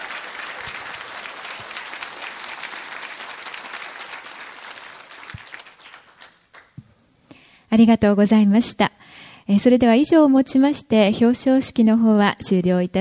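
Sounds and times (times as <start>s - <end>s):
audience applause at award ceremony: 0.0s - 6.8s
speech: 7.7s - 12.9s.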